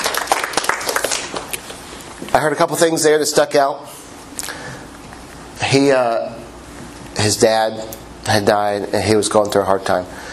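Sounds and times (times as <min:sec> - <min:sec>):
audience clapping: 0:00.0 - 0:01.6
speech: 0:02.4 - 0:04.1, 0:05.7 - 0:06.4, 0:07.2 - 0:10.3.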